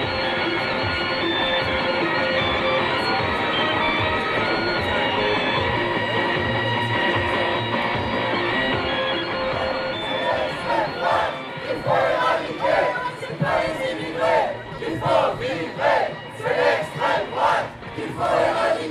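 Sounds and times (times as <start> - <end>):
crowd murmur: 0.0 - 18.9
protesters chanting at a demonstration: 9.3 - 18.9.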